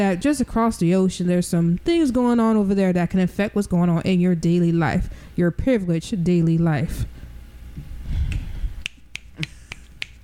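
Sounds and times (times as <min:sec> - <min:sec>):
speech: 0:00.0 - 0:07.2
finger snapping: 0:08.3 - 0:10.2.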